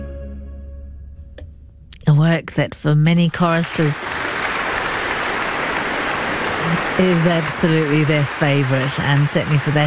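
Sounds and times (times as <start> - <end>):
speech: 2.2 - 4.3, 7.0 - 9.8
audience applauding soloists and chorus after a choral performance: 3.2 - 9.8.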